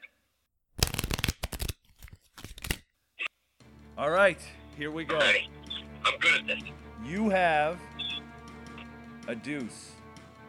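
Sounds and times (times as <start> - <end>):
playing cards shuffling: 0.8 - 2.8
speech: 4.0 - 7.9, 9.3 - 10.0.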